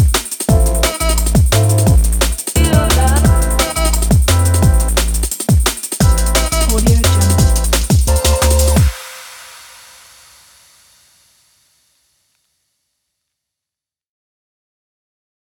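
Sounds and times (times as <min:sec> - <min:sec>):
fashion music: 0:00.0 - 0:09.1.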